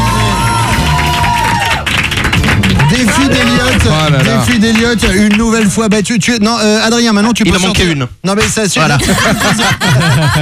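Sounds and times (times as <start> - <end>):
people whooping and shouting: 0.0 - 1.9, 2.5 - 4.5
crowd cheering and applauding at an athletics challenge contest: 0.0 - 5.8
speech: 2.9 - 10.4
laughter: 3.0 - 4.4, 8.8 - 10.4.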